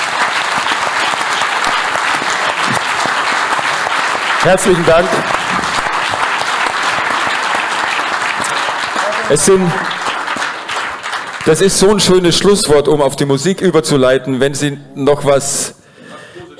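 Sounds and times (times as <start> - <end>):
audience applause: 0.0 - 12.7
speech: 4.4 - 5.6, 9.3 - 10.0, 11.4 - 15.8.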